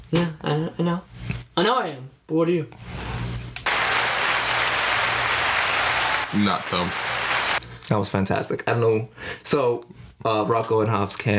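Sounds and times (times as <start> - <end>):
speech: 0.1 - 3.0, 6.3 - 7.0, 7.9 - 11.3
applause clap track: 3.6 - 7.6.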